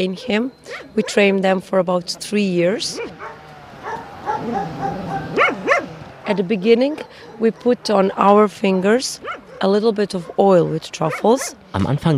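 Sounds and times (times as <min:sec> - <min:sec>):
speech: 0:00.0 - 0:03.4, 0:04.4 - 0:05.2, 0:06.3 - 0:12.1
truffle dog whimpering: 0:00.4 - 0:01.4, 0:02.8 - 0:11.6
truffle dog barking: 0:00.7 - 0:01.3, 0:02.9 - 0:08.3, 0:09.1 - 0:11.6.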